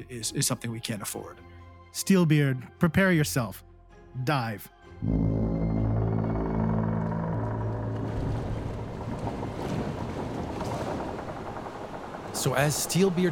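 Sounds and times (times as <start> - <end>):
speech: 0.0 - 5.3, 12.4 - 13.3
ship wood creaking: 5.0 - 13.3
water rushing into the hole: 7.5 - 13.3.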